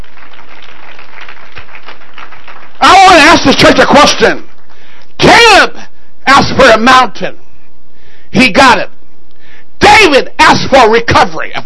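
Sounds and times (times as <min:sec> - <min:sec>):
crowd clapping hands: 0:00.0 - 0:05.1
speech: 0:03.4 - 0:04.5, 0:05.2 - 0:07.4, 0:08.3 - 0:08.9, 0:10.0 - 0:11.6.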